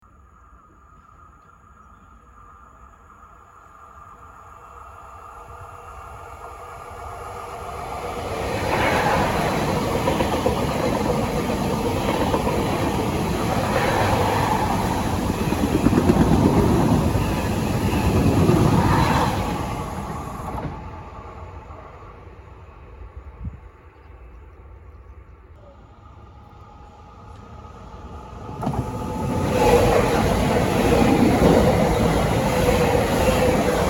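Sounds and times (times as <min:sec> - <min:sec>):
train passing by: 0:00.0 - 0:33.8.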